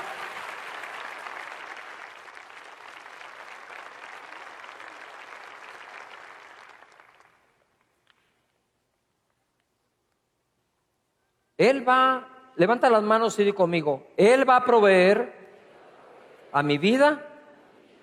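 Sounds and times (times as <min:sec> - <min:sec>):
applause: 0:00.0 - 0:08.2
speech: 0:11.6 - 0:15.4, 0:16.5 - 0:17.3.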